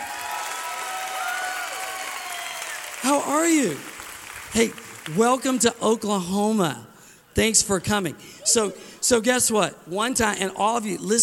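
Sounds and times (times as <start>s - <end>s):
faint cheers or whistles: 0.0s - 3.0s
crowd applauding: 0.0s - 5.8s
speech: 3.0s - 3.9s, 4.5s - 11.2s.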